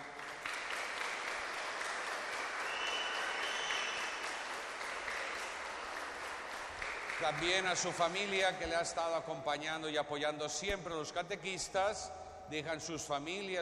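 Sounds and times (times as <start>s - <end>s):
applause: 0.0s - 8.6s
speech: 7.2s - 13.5s.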